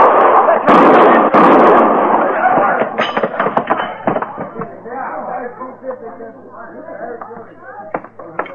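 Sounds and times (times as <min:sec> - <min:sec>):
rifle shots in a western radio drama: 0:00.0 - 0:03.9
people talking: 0:00.0 - 0:08.5.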